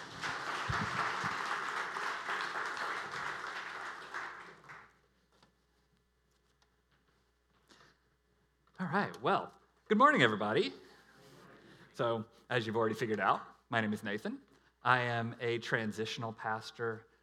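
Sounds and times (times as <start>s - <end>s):
applause: 0.0s - 5.0s
speech: 8.9s - 10.8s, 12.0s - 17.1s.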